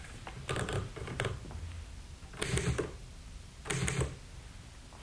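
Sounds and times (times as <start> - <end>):
typewriter typing: 0.4 - 1.4, 2.3 - 3.0, 3.7 - 4.2.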